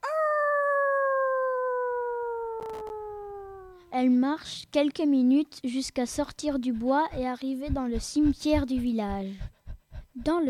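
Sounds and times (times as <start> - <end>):
wolf howling: 0.0 - 3.8
speech: 3.9 - 9.5, 10.2 - 10.4.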